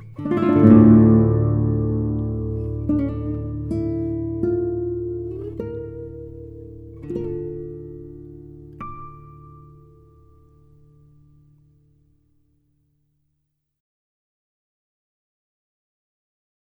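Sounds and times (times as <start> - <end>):
classical guitar: 0.0 - 12.2.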